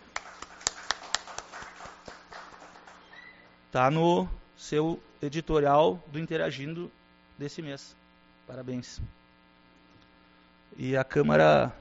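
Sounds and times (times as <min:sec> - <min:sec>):
round of applause: 0:00.0 - 0:03.1
speech: 0:03.7 - 0:09.2, 0:10.8 - 0:11.7.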